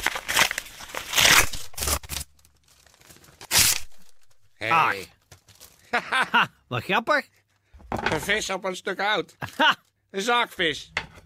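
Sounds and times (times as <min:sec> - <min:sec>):
thick envelope being torn open: 0:00.0 - 0:04.5
speech: 0:04.6 - 0:05.2, 0:05.9 - 0:07.4, 0:08.1 - 0:11.0
laughter: 0:05.9 - 0:06.6.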